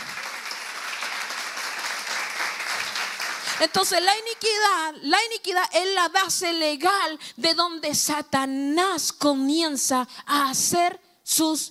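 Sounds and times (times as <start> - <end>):
audience clapping hands: 0.0 - 4.6
speech: 3.6 - 11.6.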